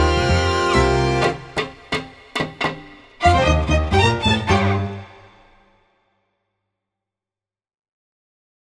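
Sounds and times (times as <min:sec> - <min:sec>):
candombe music: 0:00.0 - 0:05.9.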